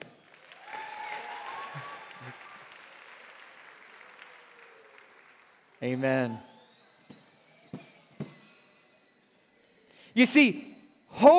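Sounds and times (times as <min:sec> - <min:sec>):
audience applause: 0:00.0 - 0:06.7
whistles and cheers: 0:00.0 - 0:11.3
speech: 0:05.8 - 0:06.5, 0:10.2 - 0:11.3.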